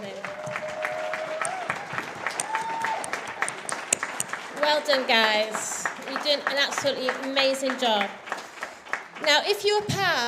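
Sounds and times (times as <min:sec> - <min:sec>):
audience applause: 0:00.0 - 0:09.8
sustained tones like whistles or cheers: 0:00.3 - 0:03.2
speech: 0:04.7 - 0:08.2, 0:09.2 - 0:10.2.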